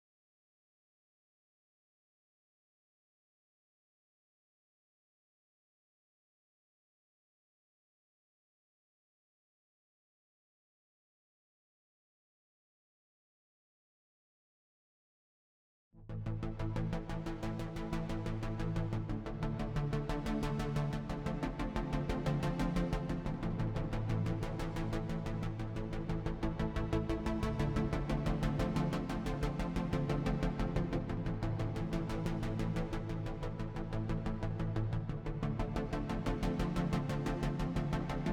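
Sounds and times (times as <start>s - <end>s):
bass: 16.0s - 38.3s.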